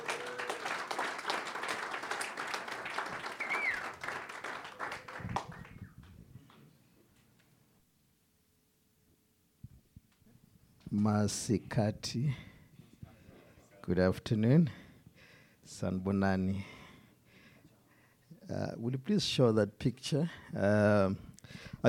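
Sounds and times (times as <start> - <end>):
audience applause: 0.0 - 6.0
speech: 11.0 - 12.4, 13.9 - 14.8, 15.7 - 16.8, 18.5 - 21.8.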